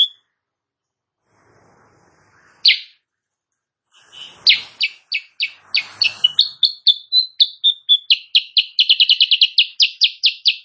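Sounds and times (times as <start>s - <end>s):
Sooty-headed bulbul singing in the morning: 2.6s - 3.0s, 4.0s - 10.6s.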